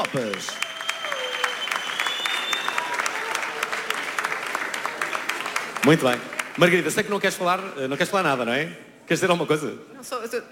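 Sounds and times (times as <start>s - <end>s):
speech: 0.0s - 0.7s, 5.8s - 10.5s
audience applause: 0.0s - 7.7s
whistles: 0.3s - 3.2s.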